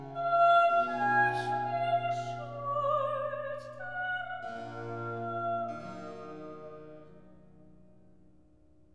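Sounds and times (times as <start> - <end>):
recitative singing: 0.0 - 7.1.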